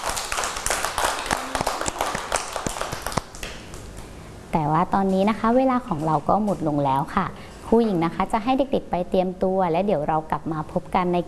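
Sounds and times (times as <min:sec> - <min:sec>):
children clapping their hands: 0:00.0 - 0:03.9
speech: 0:04.6 - 0:11.2.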